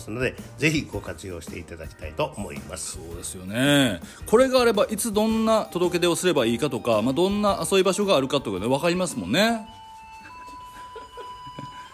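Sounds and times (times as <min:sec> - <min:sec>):
speech: 0:00.0 - 0:09.8
mobile phone ringtone playing a simple electronic melody: 0:05.8 - 0:11.9.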